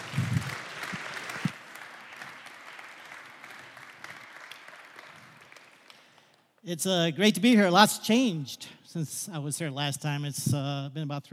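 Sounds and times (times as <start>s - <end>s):
audience clapping in welcome: 0.0s - 6.6s
speech: 6.7s - 11.3s.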